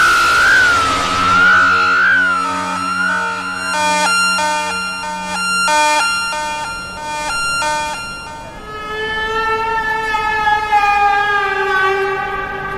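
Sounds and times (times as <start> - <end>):
alarms: 0.0 - 9.6
sirens: 0.0 - 12.7.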